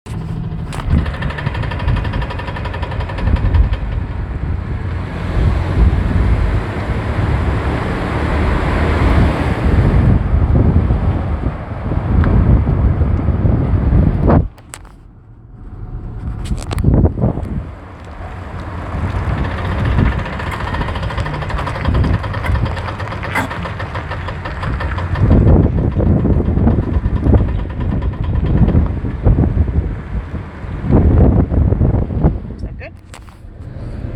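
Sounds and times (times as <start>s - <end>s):
Dodge Ram grinding going into 2WD: 0.0s - 34.1s.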